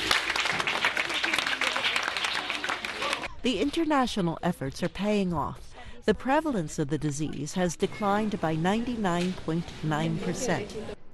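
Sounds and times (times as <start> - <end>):
group clapping: 0.0 - 3.3
speech: 3.4 - 11.1.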